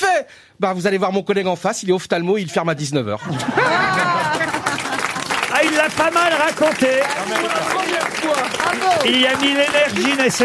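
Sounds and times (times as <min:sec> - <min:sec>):
speech: 0:00.3 - 0:04.4, 0:05.8 - 0:10.4
laughter: 0:02.4 - 0:10.4
crowd applause: 0:03.4 - 0:10.4.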